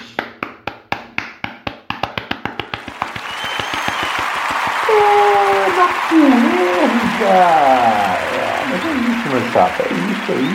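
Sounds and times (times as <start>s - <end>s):
hand clapping: 0.1s - 10.5s
laughter: 3.0s - 10.5s
speech: 5.0s - 8.2s, 8.8s - 10.5s.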